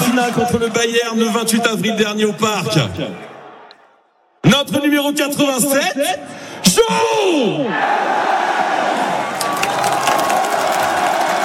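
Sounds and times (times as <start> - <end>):
stadium crowd applauding: 0.0 - 2.2, 9.0 - 11.4
speech: 0.2 - 3.3, 4.4 - 8.4.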